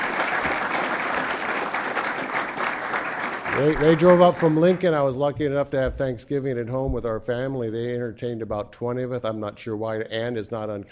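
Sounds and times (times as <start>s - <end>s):
audience applause: 0.0s - 5.4s
speech: 3.6s - 10.9s.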